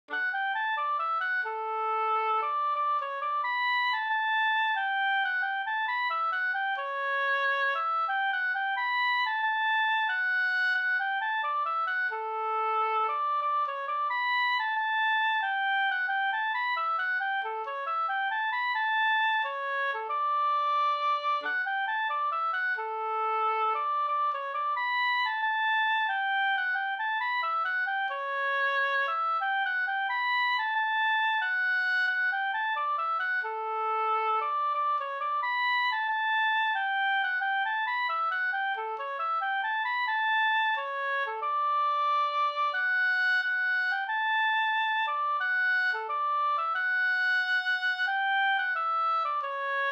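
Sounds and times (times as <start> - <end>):
folk walking tune exhibition march: 0.1 - 49.9.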